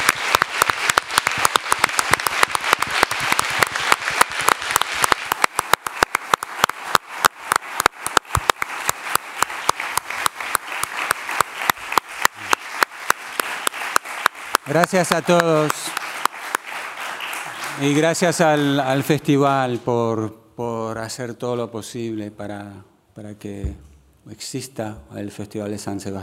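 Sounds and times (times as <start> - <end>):
applause: 0.0 - 19.2
speech: 14.7 - 15.7, 17.8 - 26.2.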